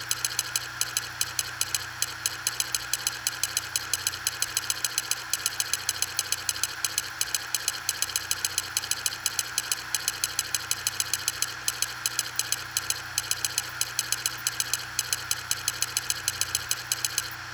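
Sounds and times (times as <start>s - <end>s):
WD WD20SPZX HDD clicking: 0.0s - 17.4s.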